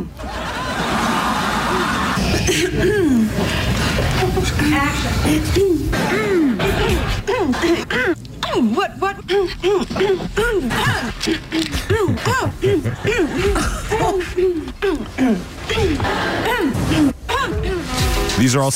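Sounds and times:
laughter: 0.2 - 3.8, 6.0 - 8.1, 9.3 - 15.0
speech: 4.8 - 5.9, 18.5 - 18.7
woman clearing her throat: 5.9 - 17.9.

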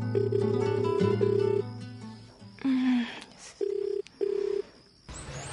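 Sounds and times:
speech: 0.1 - 1.6
telephone tone as a call is placed: 0.1 - 1.6, 3.6 - 4.7.

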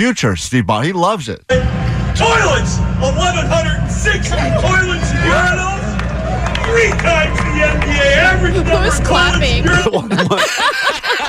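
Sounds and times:
speech: 0.0 - 5.8, 6.7 - 11.2
audience cheering: 1.5 - 11.2
laughter: 4.2 - 11.2
audience clapping: 4.5 - 9.9.

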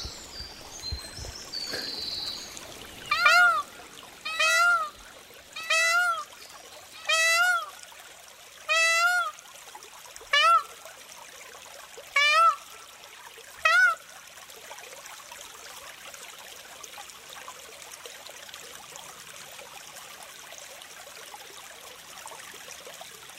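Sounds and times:
peacock calling in Liselund Park: 1.6 - 5.0, 5.6 - 6.4, 7.0 - 7.8, 8.7 - 9.3, 10.3 - 10.7, 12.2 - 12.6, 13.6 - 14.0.

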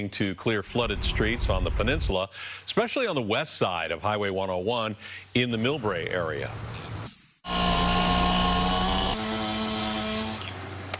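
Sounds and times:
speech: 0.0 - 6.9
chainsaws roaring through Bay Area neighborhoods: 7.5 - 10.6.

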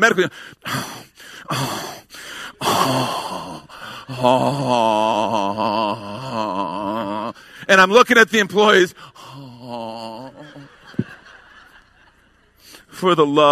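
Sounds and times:
voice mimicking exaggerated gasping and labored breathing: 0.0 - 7.8, 8.8 - 11.3
speech: 0.0 - 11.1, 13.0 - 13.5
laughter: 9.4 - 12.7.

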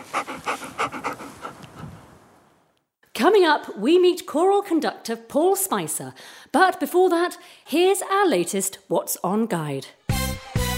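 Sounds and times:
dog panting: 0.0 - 2.2
speech: 3.2 - 10.0.

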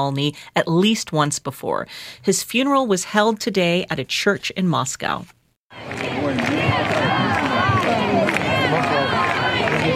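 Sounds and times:
speech: 0.0 - 7.0
crowd applauding at funeral: 5.7 - 9.9.

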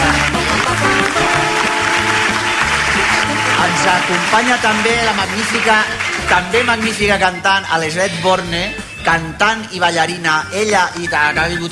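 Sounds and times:
loud sustained audience applause: 0.0 - 7.6
music with a stepping bass line: 0.0 - 11.7
speech: 3.9 - 11.7.

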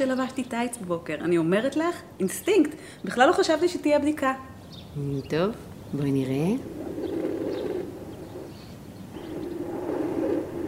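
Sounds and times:
speech: 0.0 - 6.9
fetal Doppler monitor whooshing static searching for heartbeat: 6.2 - 10.6.

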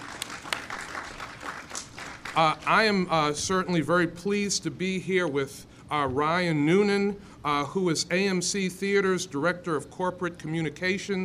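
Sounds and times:
audience applause: 0.0 - 2.9
speech: 2.4 - 11.2.

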